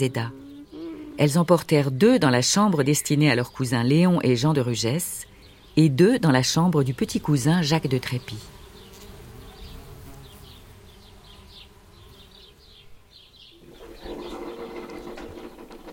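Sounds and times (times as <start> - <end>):
speech: 0.0 - 0.4, 1.2 - 8.6
coffee machine running while making coffee: 13.6 - 15.9.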